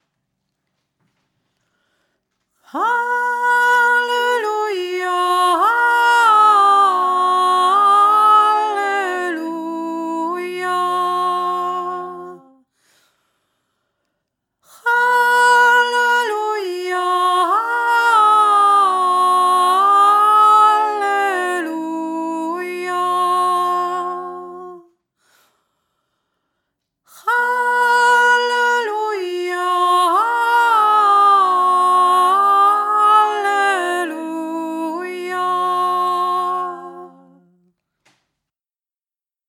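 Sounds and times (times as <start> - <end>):
choir top voice singing hallelujah: 2.7 - 12.6, 14.8 - 24.9, 27.2 - 37.6.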